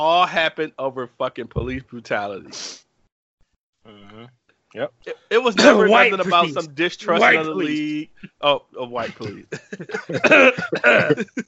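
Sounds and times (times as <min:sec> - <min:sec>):
speech: 0:00.0 - 0:02.8, 0:03.8 - 0:11.4
laughter: 0:05.3 - 0:11.4
harsh coughs: 0:05.6 - 0:06.1, 0:09.0 - 0:11.4.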